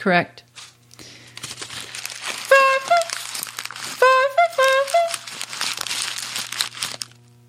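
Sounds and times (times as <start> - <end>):
footsteps crunching through dry forest leaves: 0.5 - 7.2
clown horn honking: 2.4 - 3.3, 3.9 - 5.4.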